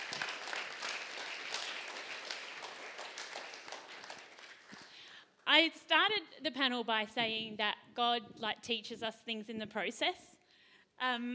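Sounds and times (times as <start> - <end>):
audience applause for parenting panel speakers: 0.0 - 5.0
speech: 5.6 - 10.3, 11.0 - 11.3.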